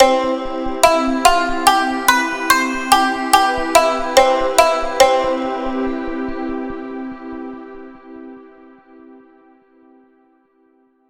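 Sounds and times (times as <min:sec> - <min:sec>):
Japanese-style jingle: 0:00.0 - 0:06.3.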